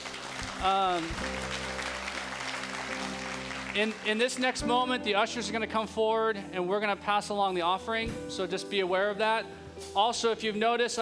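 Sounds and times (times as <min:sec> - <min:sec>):
audience clapping: 0:00.0 - 0:05.0
speech: 0:00.6 - 0:01.8, 0:03.7 - 0:10.9.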